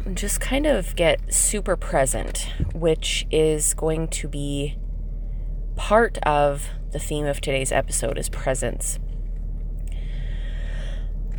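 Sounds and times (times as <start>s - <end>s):
steady low hum: 0.0s - 11.3s
speech: 0.1s - 4.8s, 5.8s - 9.1s
deep breath taken inside a parked vehicle: 9.9s - 11.2s.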